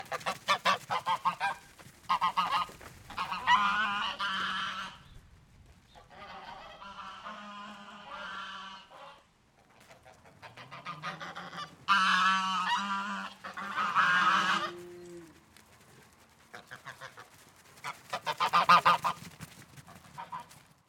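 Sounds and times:
geese honking: 0:00.0 - 0:05.1, 0:06.0 - 0:09.2, 0:09.8 - 0:15.3, 0:16.6 - 0:19.2.

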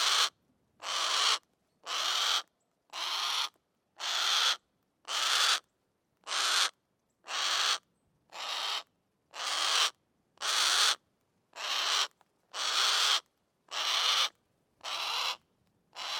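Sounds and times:
Harris's hawk shrieking: 0:00.0 - 0:05.6, 0:06.3 - 0:06.7, 0:07.3 - 0:07.8, 0:08.4 - 0:08.8, 0:09.4 - 0:11.0, 0:11.6 - 0:15.4, 0:16.0 - 0:16.1.

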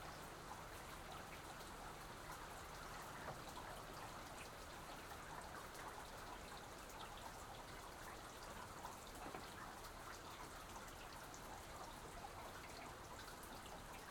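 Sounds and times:
soft rain on an exterior porch: 0:00.0 - 0:14.0.

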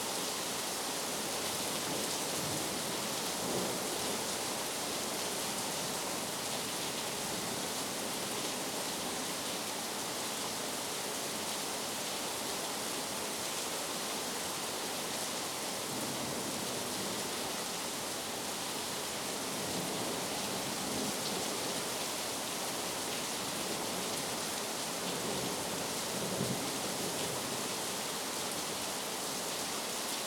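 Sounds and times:
heavy rain: 0:00.0 - 0:30.2.

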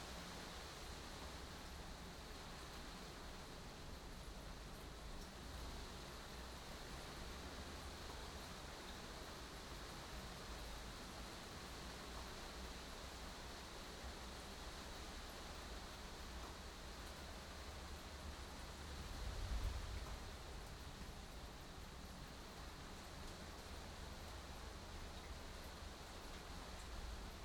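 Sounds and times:
rain on a 10 m2 glass greenhouse heard from inside: 0:00.0 - 0:27.4.

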